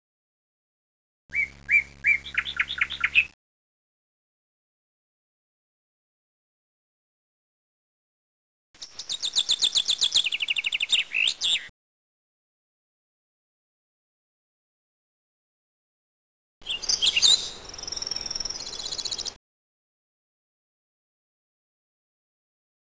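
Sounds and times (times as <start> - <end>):
birds: 1.3 - 3.4, 8.8 - 11.7, 16.6 - 19.4.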